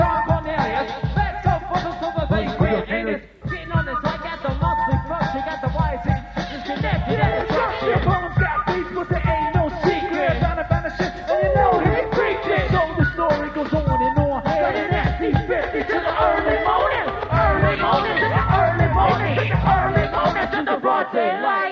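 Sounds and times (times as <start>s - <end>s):
flute loop in San Francisco CA: 0.0s - 20.8s.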